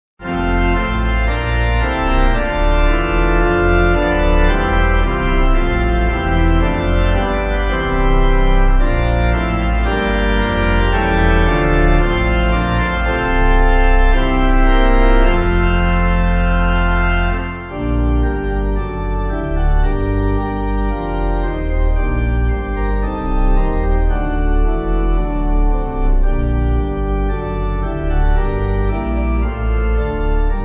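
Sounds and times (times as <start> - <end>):
pipe organ hymn backing: 0.2 - 30.6.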